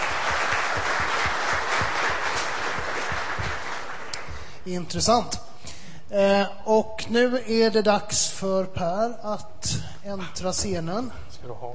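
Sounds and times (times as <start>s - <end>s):
audience applause: 0.0s - 4.6s
speech: 4.7s - 5.5s, 6.1s - 11.7s.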